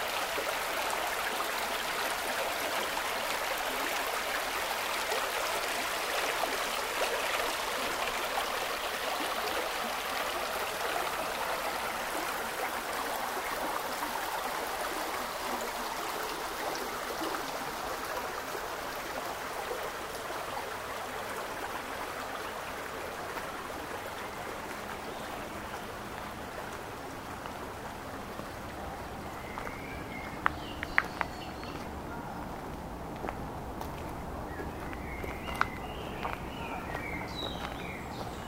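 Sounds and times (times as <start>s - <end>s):
Penllergaer woodland soundscape: 0.0s - 38.4s.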